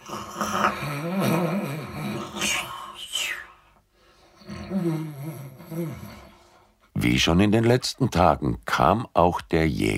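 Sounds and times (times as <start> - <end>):
voice imitating loud snoring of a sleeping wolf: 0.0 - 3.5, 4.4 - 6.6
speech: 7.1 - 9.9.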